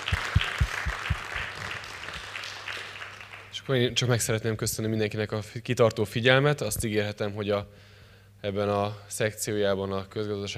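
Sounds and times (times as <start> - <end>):
audience applause for panel: 0.0 - 3.6
speech: 3.7 - 10.5.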